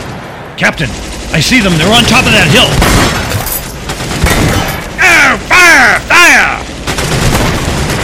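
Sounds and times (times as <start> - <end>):
war noises of battle: 0.6 - 8.0
soldiers at war using strong language: 4.9 - 6.8.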